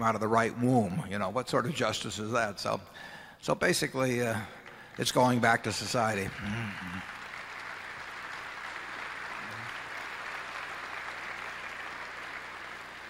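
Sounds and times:
speech: 0:00.0 - 0:07.2
audience applause: 0:04.7 - 0:13.0.

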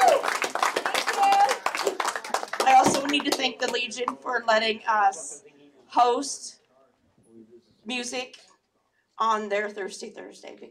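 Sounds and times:
crowd applauding a singer at a live music night in a Legion hall: 0:00.0 - 0:03.6
speech: 0:03.1 - 0:06.6, 0:07.9 - 0:08.5, 0:09.2 - 0:10.7.

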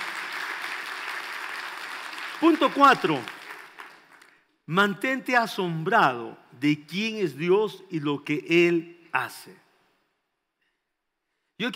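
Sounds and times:
crowd applause: 0:00.0 - 0:04.4
speech: 0:02.4 - 0:03.4, 0:04.7 - 0:09.6.

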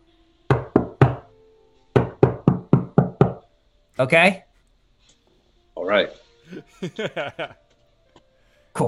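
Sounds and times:
secret knock pounded on a wall: 0:00.5 - 0:01.3, 0:01.9 - 0:03.5
speech: 0:04.0 - 0:04.4, 0:05.9 - 0:07.6
laughter: 0:06.5 - 0:07.6.

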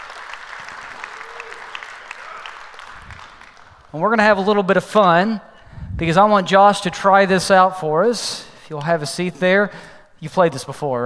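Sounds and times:
church audience applauding: 0:00.0 - 0:04.0
speech: 0:03.9 - 0:11.0.

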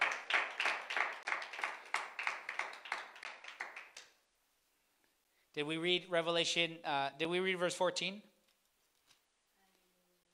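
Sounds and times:
audience applause: 0:00.0 - 0:04.1
speech: 0:05.6 - 0:08.3.

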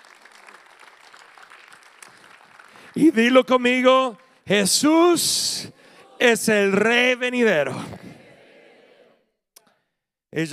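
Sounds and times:
audience applause: 0:00.0 - 0:03.0
speech: 0:02.9 - 0:08.0, 0:10.4 - 0:10.5.

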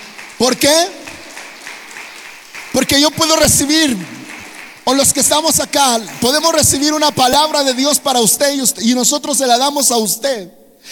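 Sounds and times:
audience applause: 0:00.0 - 0:08.6
speech: 0:00.4 - 0:01.0, 0:02.8 - 0:04.2, 0:04.9 - 0:10.8.

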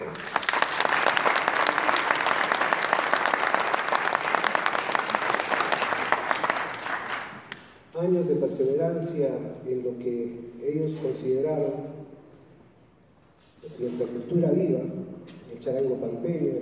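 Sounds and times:
audience applause: 0:00.0 - 0:07.6
speech: 0:08.6 - 0:11.9, 0:13.8 - 0:16.5.

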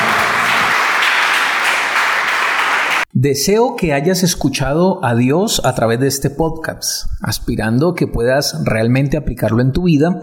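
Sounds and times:
church audience applause: 0:00.0 - 0:03.1
speech: 0:03.2 - 0:10.2.

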